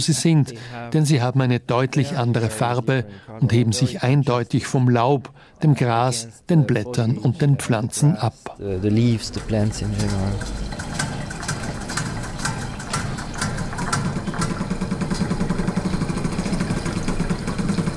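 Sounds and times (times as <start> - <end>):
speech: 0.0 - 10.8
continuous mechanical hum: 0.0 - 17.9
machines drumming on water-filled metal basins: 8.6 - 17.9.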